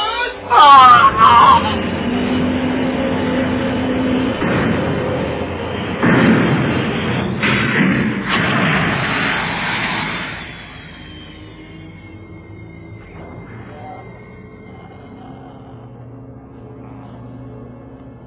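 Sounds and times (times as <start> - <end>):
low rumbling roar: 0.0 - 18.2
explosion blowing a body apart: 3.7 - 11.8.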